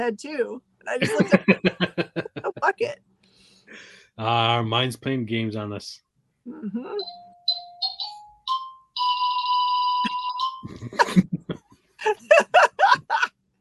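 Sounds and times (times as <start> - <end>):
speech: 0.0 - 2.1, 3.8 - 7.3, 10.6 - 13.3
laughter: 0.9 - 2.9, 4.2 - 5.7, 10.7 - 13.3
doorbell ringing: 7.0 - 10.7.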